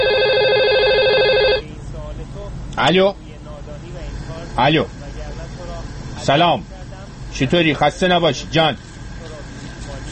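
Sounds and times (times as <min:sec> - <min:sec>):
telephone ringing: 0:00.0 - 0:01.7
speech: 0:02.8 - 0:03.3, 0:04.6 - 0:05.0, 0:06.2 - 0:06.7, 0:07.4 - 0:08.8.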